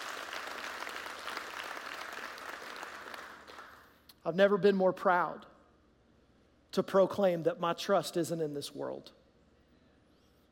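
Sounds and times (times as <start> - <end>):
audience clapping hands: 0.0 - 4.0
speech: 4.2 - 5.5, 6.8 - 9.2.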